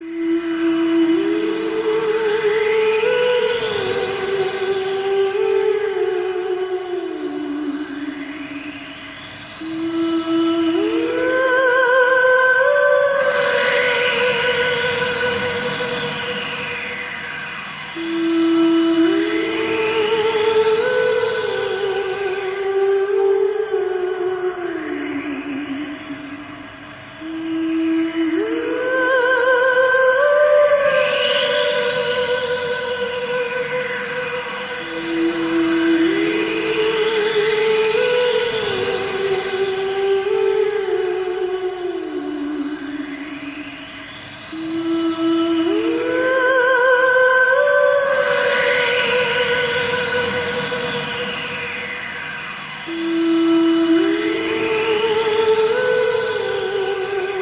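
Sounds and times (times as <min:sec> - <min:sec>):
ghost sound effect: 0:00.0 - 0:57.4.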